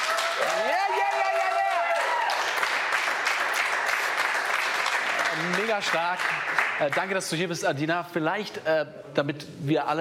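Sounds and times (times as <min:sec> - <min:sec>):
applause from the studio crew: 0:00.0 - 0:07.5
speech: 0:05.4 - 0:09.9.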